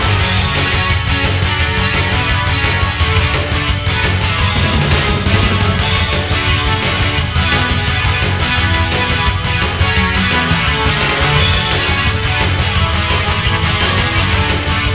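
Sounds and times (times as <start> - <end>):
theme music: 0.0 - 14.9.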